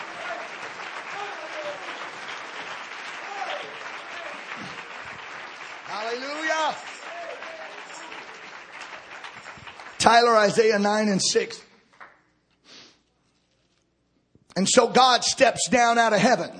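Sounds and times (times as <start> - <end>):
audience clapping hands: 0.0 - 12.2
speech: 10.1 - 11.7, 14.6 - 16.5.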